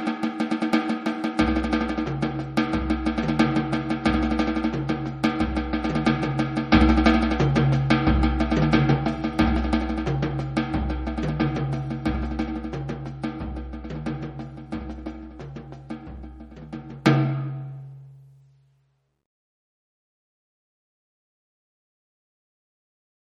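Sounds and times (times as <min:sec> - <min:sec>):
South American drum pattern: 0:00.0 - 0:18.0.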